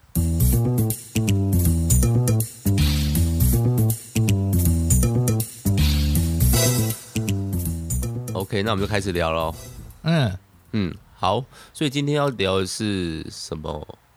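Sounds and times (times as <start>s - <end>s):
upbeat instrumental podcast theme tune: 0.2s - 10.0s
speech: 8.5s - 14.0s.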